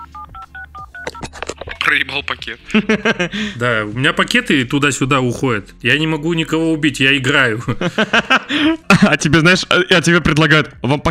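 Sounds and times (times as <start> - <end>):
telephone keypad tones: 0.0 - 1.2
speech: 1.9 - 11.1
laughter: 2.7 - 3.6, 7.6 - 9.4.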